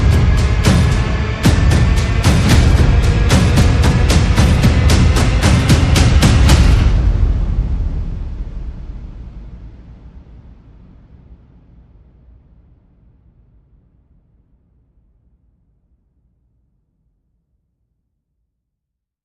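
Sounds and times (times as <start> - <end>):
percussion and effects: 0.0 - 9.7.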